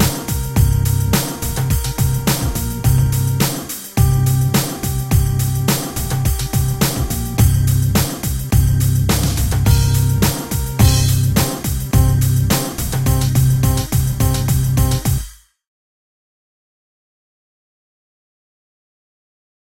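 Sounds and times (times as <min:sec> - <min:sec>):
Korg synthesizer factory sounds: 0:00.0 - 0:15.0.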